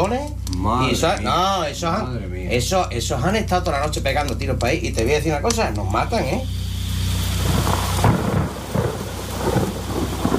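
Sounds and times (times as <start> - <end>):
speech: 0.1 - 6.6
heavy rain: 6.5 - 10.3
thunder rumbling: 7.3 - 10.3.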